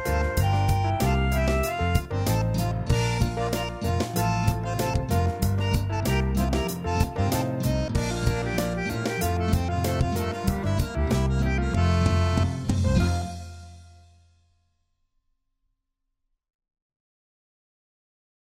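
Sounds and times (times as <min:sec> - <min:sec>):
instrumental music: 0:00.0 - 0:14.4.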